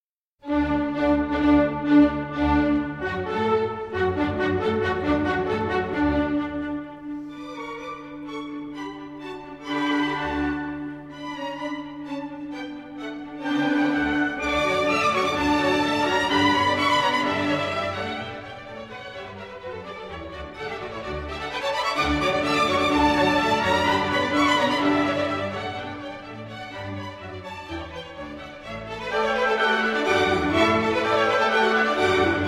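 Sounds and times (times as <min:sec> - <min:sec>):
violin concerto: 0:00.4 - 0:32.4.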